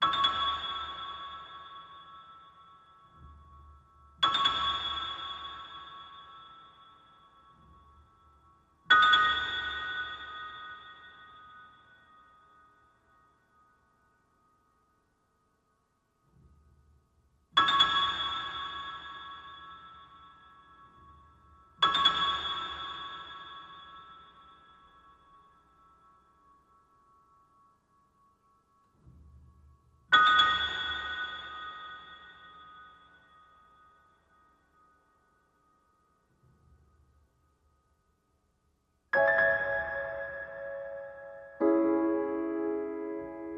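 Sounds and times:
sad bells: 0:00.0 - 0:16.1, 0:17.6 - 0:37.4, 0:39.2 - 0:43.5.

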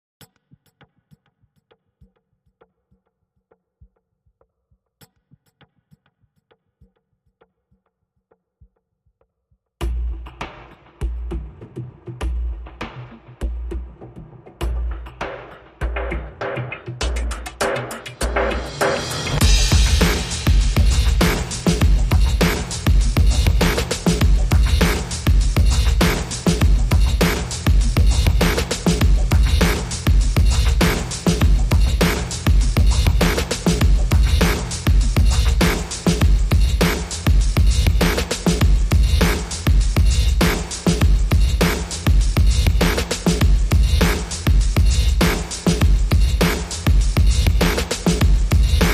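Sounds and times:
drums: 0:09.8 - 0:48.9.

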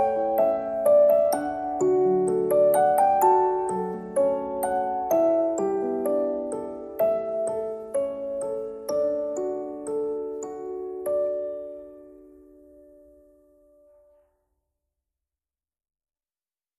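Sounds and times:
music box: 0:00.0 - 0:13.3
piano: 0:00.0 - 0:14.4.

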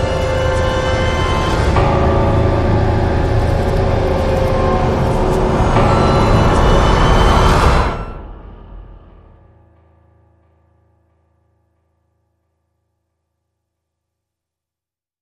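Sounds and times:
drones: 0:00.0 - 0:10.5.

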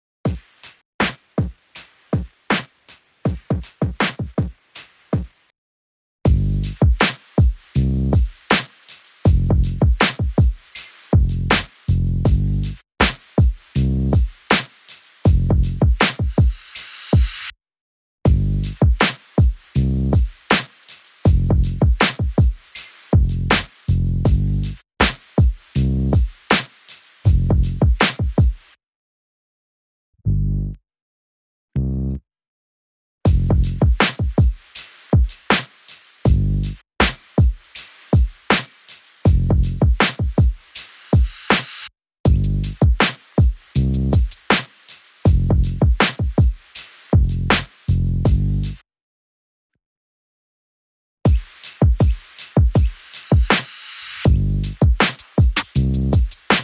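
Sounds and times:
drums: 0:00.2 - 0:05.4, 0:06.3 - 0:17.5, 0:18.3 - 0:28.8, 0:33.3 - 0:48.8, 0:51.3 - 0:56.6
bass: 0:06.3 - 0:07.0, 0:07.8 - 0:08.2, 0:09.3 - 0:10.0, 0:11.1 - 0:13.2, 0:13.8 - 0:14.2, 0:15.3 - 0:15.9, 0:18.3 - 0:18.9, 0:19.8 - 0:20.2, 0:21.3 - 0:22.0, 0:23.1 - 0:25.2, 0:25.8 - 0:26.2, 0:27.3 - 0:27.9, 0:30.2 - 0:30.8, 0:31.8 - 0:32.2, 0:33.3 - 0:34.0, 0:36.3 - 0:37.2, 0:39.3 - 0:39.9, 0:42.3 - 0:42.8, 0:43.8 - 0:44.2, 0:45.3 - 0:45.9, 0:47.1 - 0:48.8, 0:54.2 - 0:54.8, 0:55.6 - 0:56.2.

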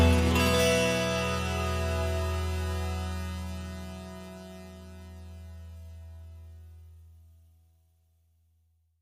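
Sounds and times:
crazy synth music outro: 0:00.0 - 0:07.2.

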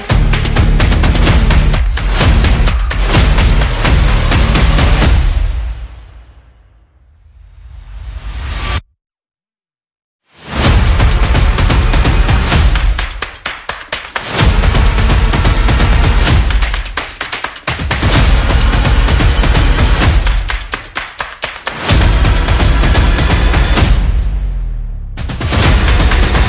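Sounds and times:
upbeat victory music beat: 0:00.0 - 0:05.7, 0:10.6 - 0:24.2, 0:25.2 - 0:26.4.

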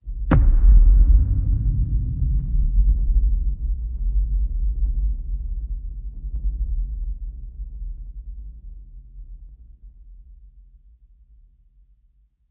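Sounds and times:
low hit: 0:00.1 - 0:04.8.

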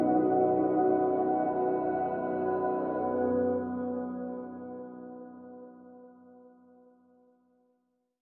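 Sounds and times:
celestial pads: 0:00.0 - 0:05.6.

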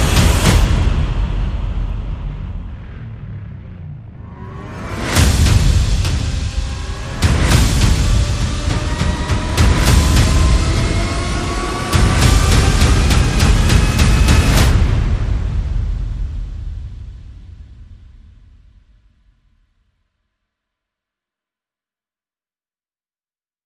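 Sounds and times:
sound effects: 0:00.0 - 0:15.1
percussion: 0:00.0 - 0:19.2.

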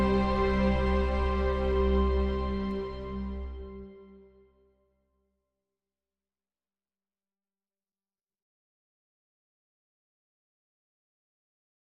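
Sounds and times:
instrumental music without harp: 0:00.0 - 0:04.6.

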